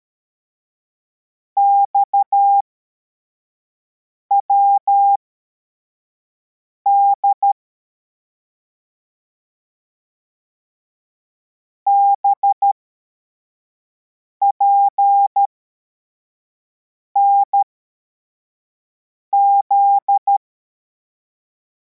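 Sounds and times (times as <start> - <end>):
CW morse code beeps: 1.8 - 2.6, 4.3 - 5.2, 6.9 - 7.5, 11.9 - 12.7, 14.5 - 15.5, 19.3 - 20.4.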